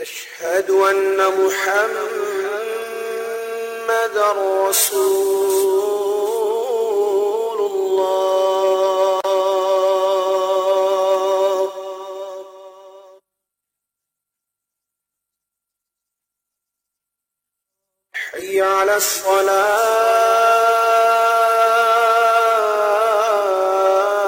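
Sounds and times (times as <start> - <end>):
Azan call to prayer: 0.0 - 13.2, 18.2 - 24.2.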